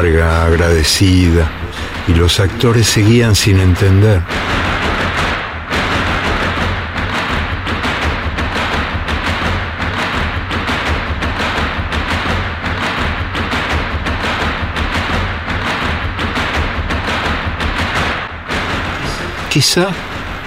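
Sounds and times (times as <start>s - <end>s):
dense crowd noise: 0.0s - 4.6s, 18.5s - 20.4s
speech: 0.0s - 4.8s, 19.6s - 20.1s
audience stamping its feet in applause: 1.0s - 20.4s.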